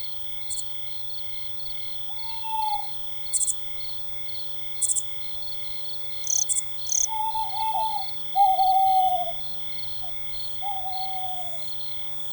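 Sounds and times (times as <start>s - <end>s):
owl in a forest: 2.2s - 3.5s, 6.3s - 11.8s.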